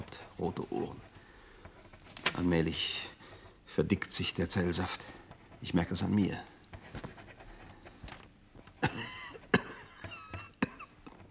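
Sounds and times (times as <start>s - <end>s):
speech: 0.4s - 1.1s, 2.4s - 7.1s
coughing: 8.8s - 11.2s.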